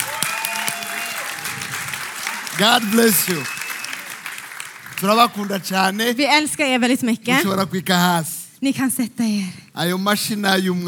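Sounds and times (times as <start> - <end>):
audience applause: 0.0 - 6.0
speech: 2.6 - 3.6, 5.0 - 10.8.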